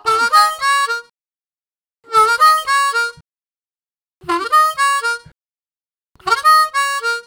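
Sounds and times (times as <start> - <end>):
harmonica riffs: 0.0 - 1.1, 2.1 - 3.2, 4.2 - 5.3, 6.2 - 7.2.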